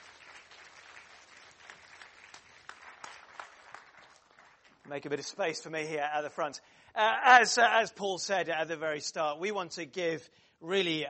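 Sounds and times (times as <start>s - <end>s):
audience round of applause: 0.0s - 5.0s
speech: 4.9s - 11.0s.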